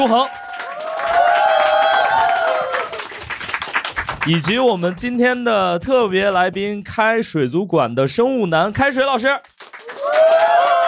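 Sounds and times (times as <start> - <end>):
speech: 0.0 - 0.4, 4.2 - 9.5
applause: 0.0 - 5.2, 9.2 - 10.8.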